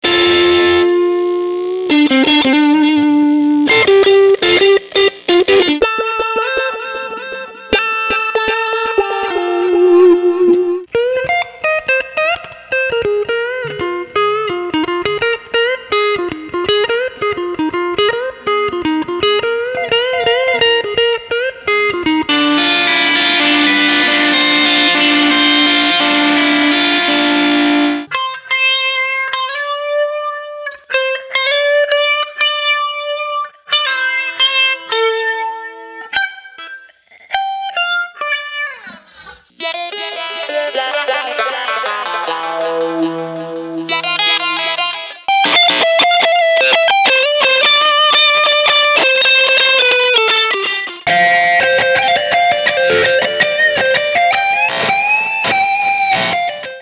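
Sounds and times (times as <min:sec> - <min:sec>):
guitar: 0:00.0 - 0:56.8.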